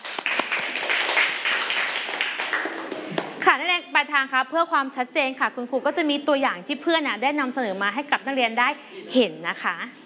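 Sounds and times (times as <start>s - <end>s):
students clapping: 0.0s - 3.4s
speech: 4.0s - 10.0s.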